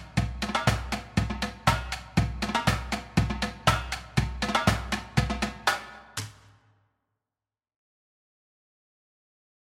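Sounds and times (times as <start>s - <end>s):
full drumline playing a jig: 0.0s - 6.0s.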